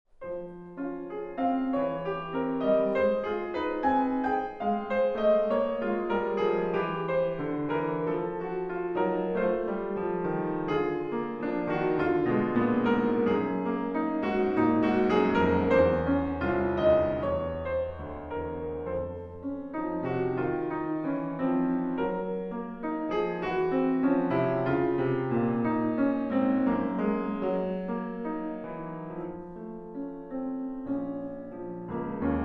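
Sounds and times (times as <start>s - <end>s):
piano: 0.1s - 32.4s.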